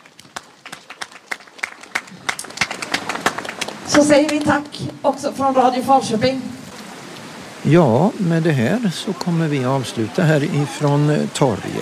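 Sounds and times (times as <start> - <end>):
audience applause: 0.0 - 4.8, 8.6 - 11.8
speech: 3.9 - 6.5, 7.6 - 11.8.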